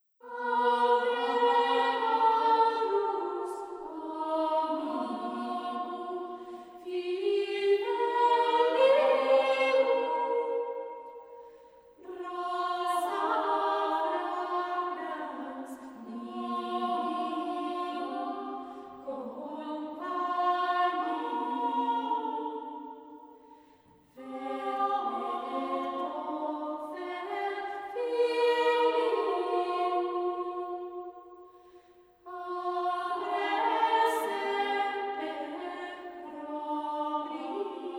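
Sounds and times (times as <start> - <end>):
choir singing motet: 0.2 - 23.4, 24.1 - 37.9.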